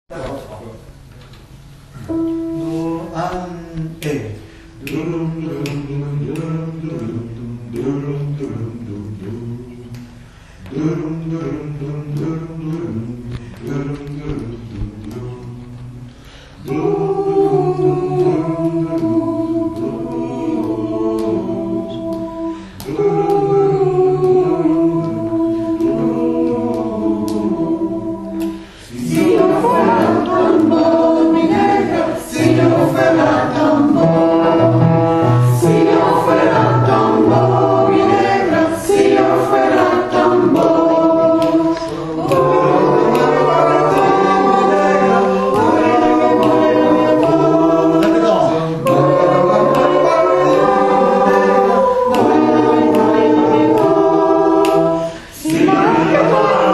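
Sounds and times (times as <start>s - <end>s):
bullerengue music: 1.6s - 10.1s, 11.7s - 56.7s.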